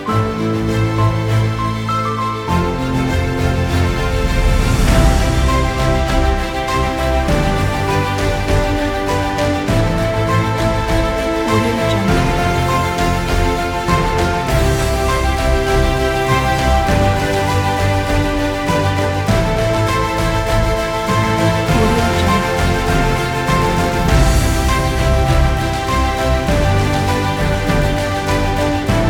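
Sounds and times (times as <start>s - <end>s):
uplifting cinematic music: 0.0s - 29.0s.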